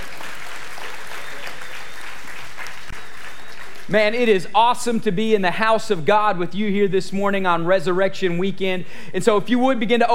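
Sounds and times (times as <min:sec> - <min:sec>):
audience clapping: 0:00.0 - 0:04.4
speech: 0:03.9 - 0:10.1.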